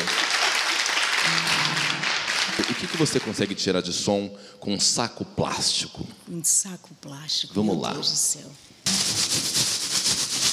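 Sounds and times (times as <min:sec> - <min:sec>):
applause: 0:00.0 - 0:03.6
speech: 0:02.8 - 0:09.5.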